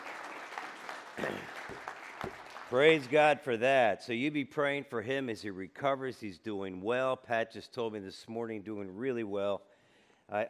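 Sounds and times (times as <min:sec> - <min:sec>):
audience clapping: 0:00.0 - 0:03.4
speech: 0:01.2 - 0:09.7, 0:10.3 - 0:10.4.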